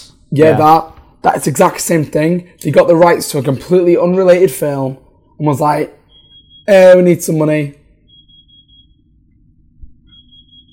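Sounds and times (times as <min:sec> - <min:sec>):
speech: 0:00.3 - 0:06.0, 0:06.7 - 0:07.8
cooker timer beeping: 0:05.1 - 0:10.7.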